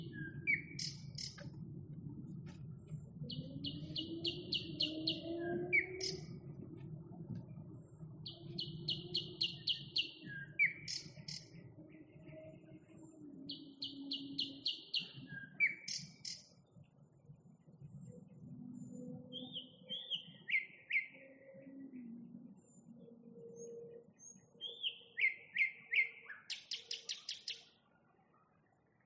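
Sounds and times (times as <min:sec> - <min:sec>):
low background rumble: 0:00.0 - 0:13.2
nightingale song: 0:00.0 - 0:16.9, 0:17.8 - 0:29.0.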